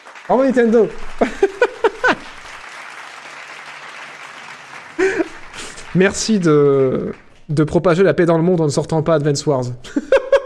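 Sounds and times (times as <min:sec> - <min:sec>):
applause: 0:00.0 - 0:07.5
speech: 0:00.3 - 0:01.4, 0:06.0 - 0:10.1
laughter: 0:00.9 - 0:02.6, 0:05.0 - 0:06.0, 0:09.8 - 0:10.4.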